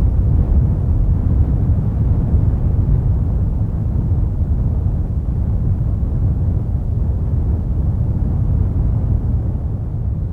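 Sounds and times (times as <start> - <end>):
constant natural strong wind: 0.0 - 10.3.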